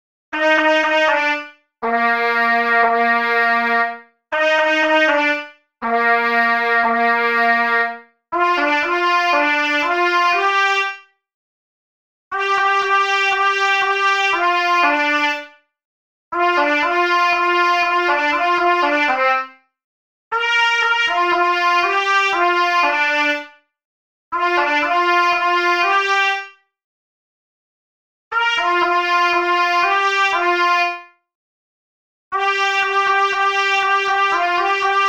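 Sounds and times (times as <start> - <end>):
trumpet: 0.4 - 11.0, 12.3 - 15.6, 16.4 - 19.6, 20.3 - 23.6, 24.4 - 26.6, 28.3 - 31.1, 32.4 - 35.0.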